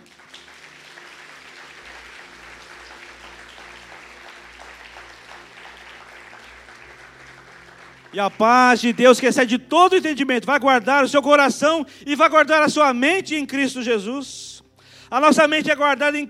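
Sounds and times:
audience applause: 0:00.0 - 0:10.0
speech: 0:08.1 - 0:14.5, 0:15.1 - 0:16.2.

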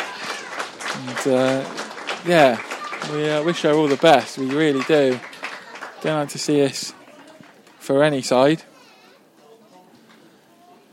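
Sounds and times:
football crowd applauding injured player: 0:00.0 - 0:07.9
speech: 0:01.0 - 0:05.3, 0:06.0 - 0:07.0, 0:07.9 - 0:08.7.

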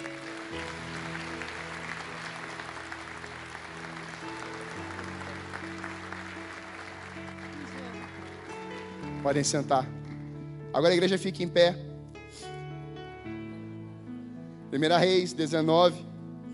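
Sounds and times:
church audience applauding: 0:00.0 - 0:10.2
speech: 0:09.2 - 0:10.0, 0:10.8 - 0:12.5, 0:14.7 - 0:16.1.

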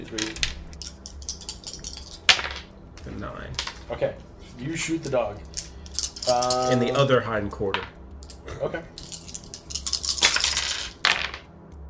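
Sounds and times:
speech: 0:00.0 - 0:00.6, 0:03.1 - 0:05.6, 0:06.3 - 0:09.0
dice clattering across a hard tabletop: 0:00.1 - 0:02.7, 0:03.5 - 0:03.9, 0:05.4 - 0:07.0, 0:07.7 - 0:11.5.

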